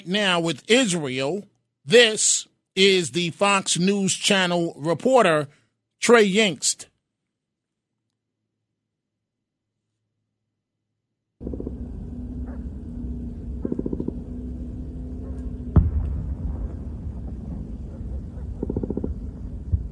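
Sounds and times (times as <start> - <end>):
speech: 0.0 - 6.9
gunfire: 15.7 - 19.9.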